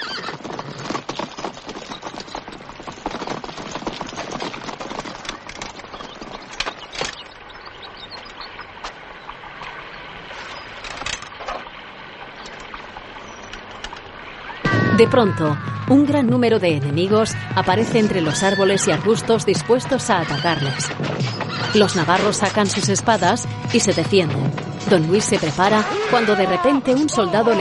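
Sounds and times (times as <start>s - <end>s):
horses neighing by a stream: 0.0s - 5.6s, 16.6s - 24.2s, 24.8s - 27.5s
horses' hooves clip-clopping by a stream: 0.0s - 15.3s, 15.9s - 27.5s
speech: 15.0s - 21.1s, 21.7s - 27.5s.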